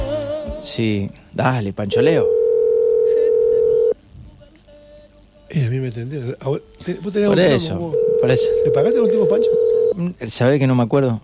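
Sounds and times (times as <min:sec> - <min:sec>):
faint hiss: 0:00.0 - 0:11.2
speech: 0:00.6 - 0:02.4, 0:05.5 - 0:11.2
telephone ringback tone on an unanswered call: 0:02.0 - 0:04.0, 0:07.3 - 0:10.0.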